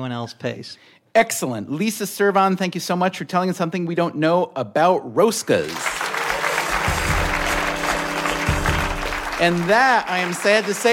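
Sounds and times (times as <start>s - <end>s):
speech: 0.0s - 6.0s, 9.4s - 10.9s
audience applause: 5.6s - 10.9s.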